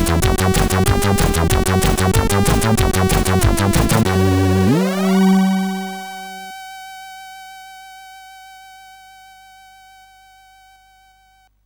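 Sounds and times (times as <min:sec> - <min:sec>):
SID CSG8580 chiptune techno: 0:00.0 - 0:06.6.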